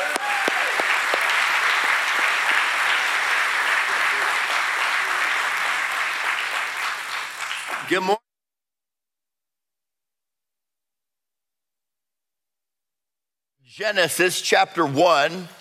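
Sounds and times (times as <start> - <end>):
church congregation applause welcoming a guest pastor at Calvary Knoxville: 0.0 - 8.2
speech: 7.9 - 8.2, 13.8 - 15.5.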